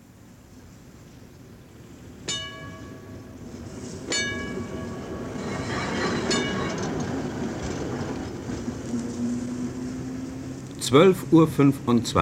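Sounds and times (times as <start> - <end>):
tram railcar driving slowly across a city tram depot yard: 0.0 - 12.2
sharp metallic screeches and clanks: 5.4 - 7.8.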